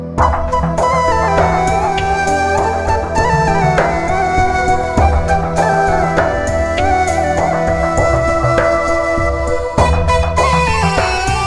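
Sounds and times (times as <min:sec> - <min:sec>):
instrumental music: 0:00.2 - 0:11.4.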